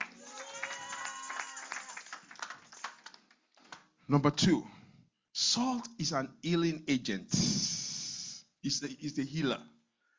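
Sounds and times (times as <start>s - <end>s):
audience hand clapping: 0.0s - 4.0s
speech: 4.1s - 4.8s, 5.4s - 7.8s, 8.6s - 9.7s.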